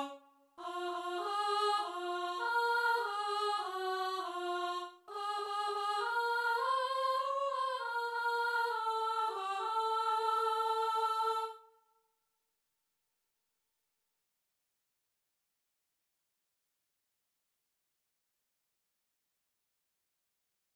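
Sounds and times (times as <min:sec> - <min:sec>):
contralto singing: 0:00.0 - 0:11.6.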